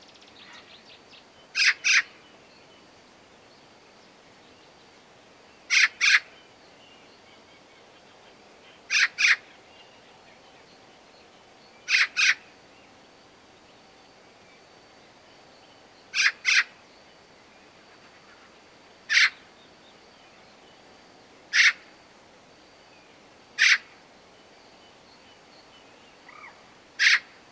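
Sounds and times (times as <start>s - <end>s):
Eurasian magpie Pica pica calling with harsh noisy rasps: 1.6s - 2.1s, 5.7s - 6.3s, 8.9s - 9.4s, 11.9s - 12.4s, 16.2s - 16.7s, 19.1s - 19.4s, 21.5s - 21.8s, 23.6s - 23.9s, 26.3s - 27.3s.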